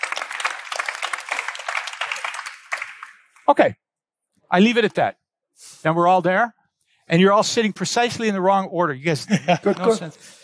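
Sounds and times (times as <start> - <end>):
audience clapping for a speaker being introduced: 0.0 - 3.6
speech: 3.5 - 3.8, 4.5 - 10.4
laughter: 9.1 - 10.4.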